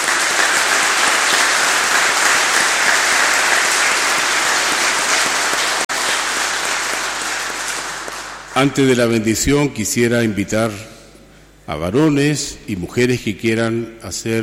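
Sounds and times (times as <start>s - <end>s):
applause: 0.0s - 9.0s
speech: 8.6s - 11.0s, 11.7s - 14.4s.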